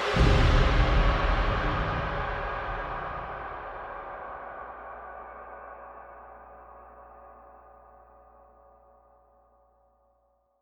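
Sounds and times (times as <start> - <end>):
drum: 0.2 - 4.3.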